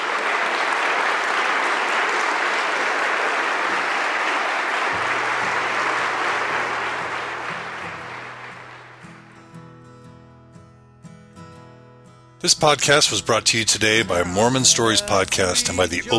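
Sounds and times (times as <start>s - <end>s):
audience applause: 0.0s - 9.4s
speech: 12.4s - 16.1s.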